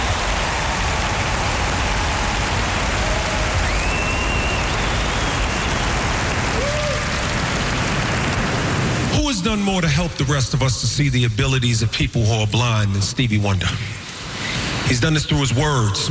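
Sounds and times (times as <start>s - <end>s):
crowd applauding: 0.0s - 9.1s
speech: 9.5s - 14.0s, 14.9s - 16.1s.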